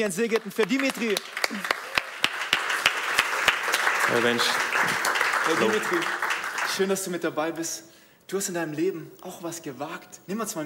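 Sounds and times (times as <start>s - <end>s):
speech: 0.0s - 1.8s, 4.1s - 10.6s
audience applause: 0.2s - 7.1s.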